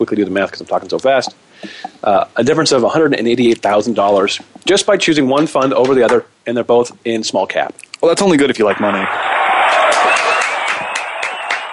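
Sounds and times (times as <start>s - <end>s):
speech: 0.0s - 9.3s
crowd cheering and applauding effect: 8.6s - 11.7s.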